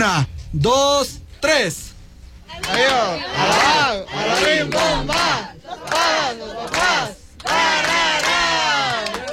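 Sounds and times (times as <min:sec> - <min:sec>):
speech: 0:00.0 - 0:01.9, 0:02.5 - 0:07.6
group of voices shouting a chant: 0:02.5 - 0:09.2.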